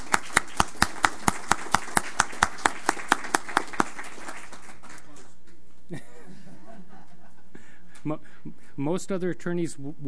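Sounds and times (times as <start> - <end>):
hand claps: 0.0 - 5.3
laughter: 5.9 - 7.6
speech: 8.0 - 10.0.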